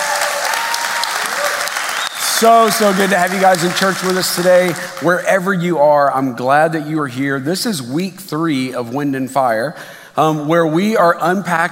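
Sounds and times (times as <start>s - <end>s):
church congregation applauding: 0.0s - 5.3s
speech: 2.4s - 11.7s.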